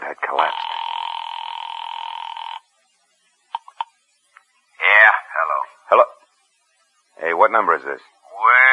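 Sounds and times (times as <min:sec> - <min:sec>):
telephone dial tone in a phone booth: 0:00.4 - 0:02.6
speech: 0:07.5 - 0:08.6.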